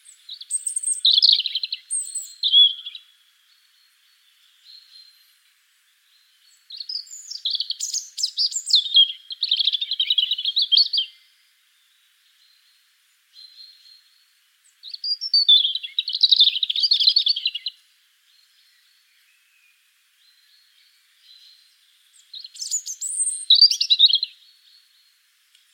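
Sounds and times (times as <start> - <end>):
European robin Erithacus rubecula singing: 0.0 - 25.7.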